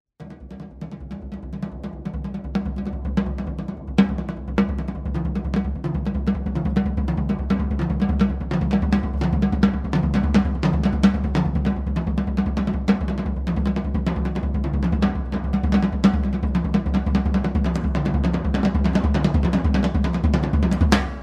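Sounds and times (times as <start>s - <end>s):
drum interlude: 0.2s - 21.2s.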